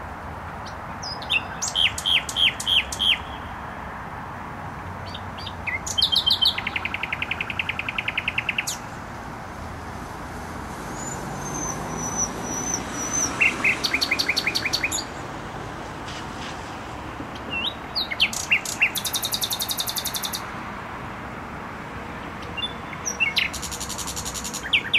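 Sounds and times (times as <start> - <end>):
traffic rumble: 0.0 - 24.9
nightingale song: 0.5 - 3.8, 5.0 - 9.0, 10.9 - 15.2, 17.3 - 20.5, 22.2 - 24.9.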